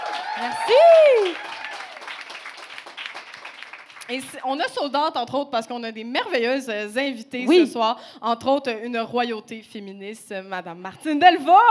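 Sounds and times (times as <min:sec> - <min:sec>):
audience applause: 0:00.0 - 0:04.0
speech: 0:00.4 - 0:01.5, 0:04.1 - 0:11.6.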